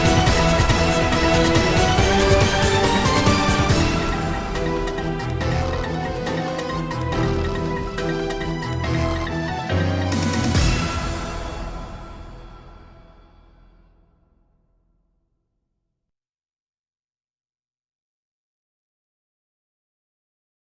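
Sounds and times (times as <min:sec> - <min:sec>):
cinematic music: 0:00.0 - 0:14.4.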